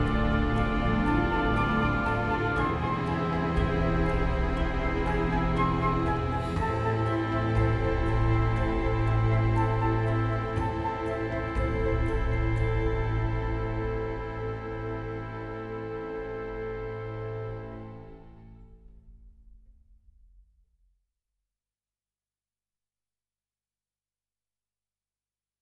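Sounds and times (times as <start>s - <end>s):
ballade music: 0.0s - 18.6s.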